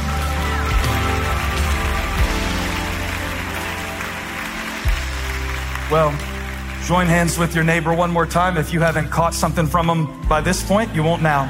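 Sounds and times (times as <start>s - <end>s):
audience clapping hands: 0.0s - 9.2s
low sustained musical tone: 0.0s - 11.4s
speech: 5.9s - 11.4s.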